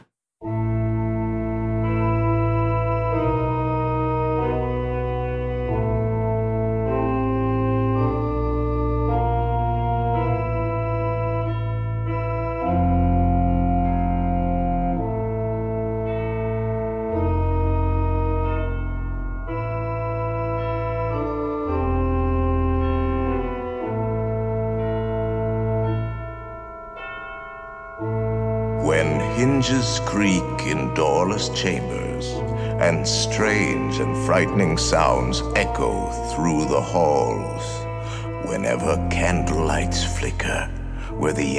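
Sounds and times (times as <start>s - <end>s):
song from a haunted house ride album: 0.0s - 41.5s
speech: 29.4s - 37.8s, 38.6s - 41.5s.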